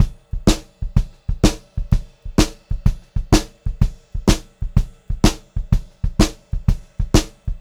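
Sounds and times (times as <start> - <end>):
pop-rock drum loop: 0.0 - 7.5.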